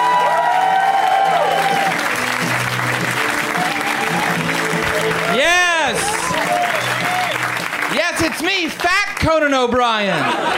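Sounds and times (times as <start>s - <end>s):
cheering and whoops: 0.0s - 2.2s, 3.4s - 7.5s
crowd applause for a comic: 0.0s - 10.5s
speech: 8.4s - 10.5s
laughter: 9.9s - 10.5s.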